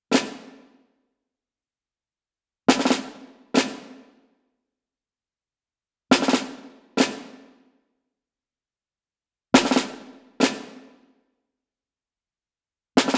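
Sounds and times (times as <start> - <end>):
snare drums at 140 bpm: 0.1 - 0.8, 2.7 - 4.2, 6.1 - 7.6, 9.6 - 11.0, 13.0 - 13.1.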